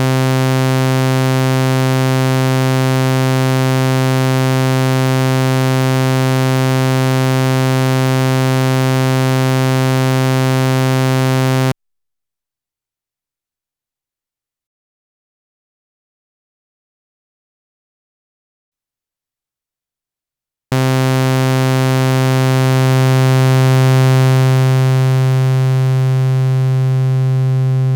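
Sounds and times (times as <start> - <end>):
triangle saw and square synthesizer waveforms: 0.0 - 11.8, 20.7 - 27.8.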